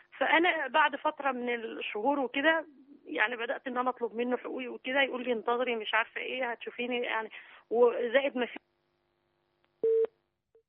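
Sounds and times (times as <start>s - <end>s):
speech: 0.2s - 8.7s
telephone beep after a call is cut off: 9.8s - 10.1s.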